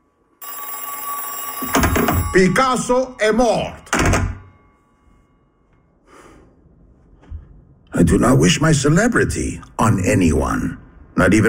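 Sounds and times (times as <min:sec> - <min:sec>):
old-style telephone bell ringing: 0:00.4 - 0:05.7
speech: 0:01.6 - 0:03.8, 0:08.0 - 0:11.4.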